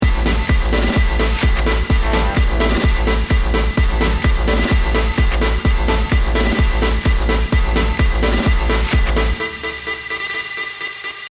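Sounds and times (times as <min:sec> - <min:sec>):
music: 0:00.0 - 0:11.2.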